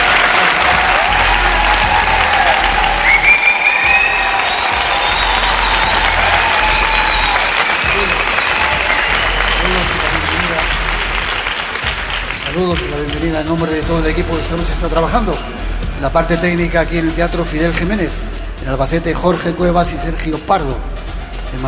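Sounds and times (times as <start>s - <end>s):
loud audience applause: 0.0s - 13.8s
speech: 13.2s - 21.6s.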